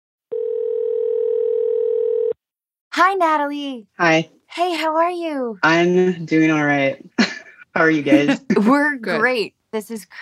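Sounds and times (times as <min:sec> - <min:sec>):
telephone line tone as a call connects: 0:00.3 - 0:02.4
speech: 0:03.0 - 0:07.2, 0:07.8 - 0:10.2.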